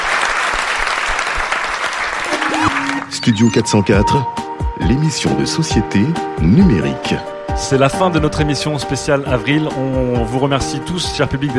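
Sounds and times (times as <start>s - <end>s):
audience applause: 0.0s - 3.1s
speech: 3.1s - 11.5s.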